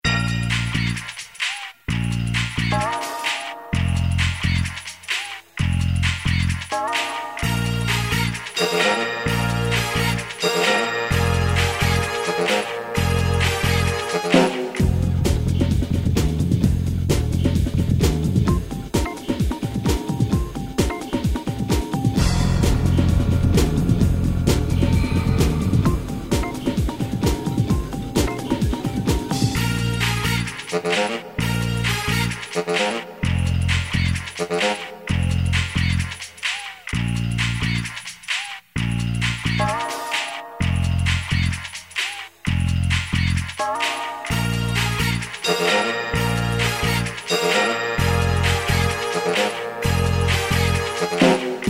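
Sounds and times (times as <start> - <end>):
jungle grunge music: 0.0 - 51.6.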